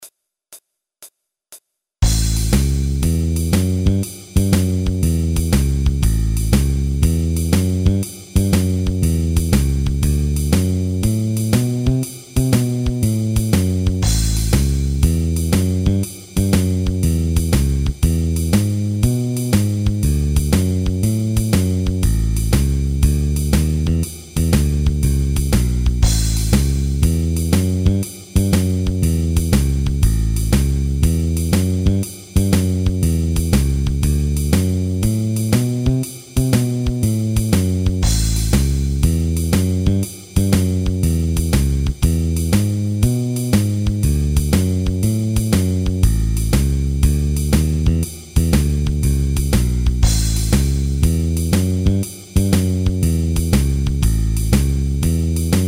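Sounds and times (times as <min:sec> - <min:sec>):
blues music in A: 0:02.0 - 0:55.6.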